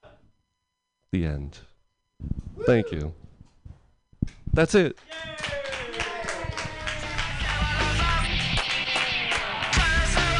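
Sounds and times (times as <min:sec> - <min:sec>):
speech: 0:01.1 - 0:03.2, 0:04.2 - 0:05.5
audience applause at an open mic night: 0:05.1 - 0:09.9.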